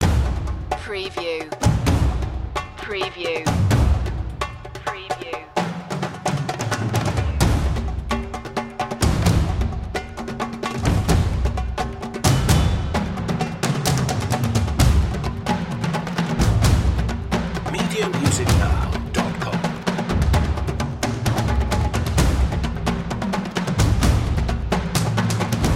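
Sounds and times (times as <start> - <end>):
storming percussion: 0.0 - 25.7.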